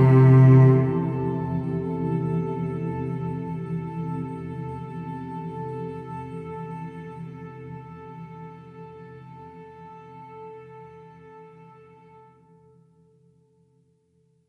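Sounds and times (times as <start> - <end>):
orchestral music: 0.0 - 4.3.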